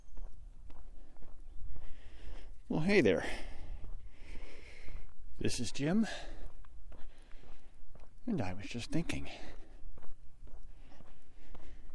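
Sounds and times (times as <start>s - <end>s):
footsteps walking outdoors away from a house: 0.0s - 11.9s
speech: 2.7s - 3.5s, 5.4s - 6.3s, 8.2s - 9.6s.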